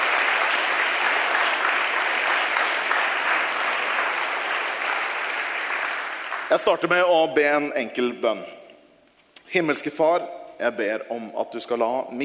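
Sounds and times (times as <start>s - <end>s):
audience applause: 0.0s - 6.8s
speech: 6.5s - 8.6s, 9.5s - 12.2s.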